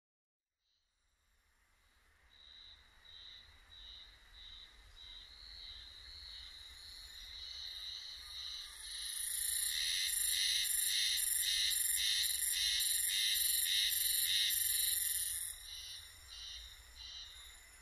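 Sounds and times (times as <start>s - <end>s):
spring cicada buzzing pulses: 7.6s - 17.6s.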